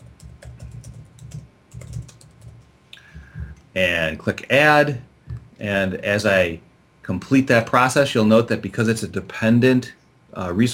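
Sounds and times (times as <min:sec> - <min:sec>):
typing on a computer keyboard: 0:00.0 - 0:02.6
speech: 0:03.8 - 0:10.7.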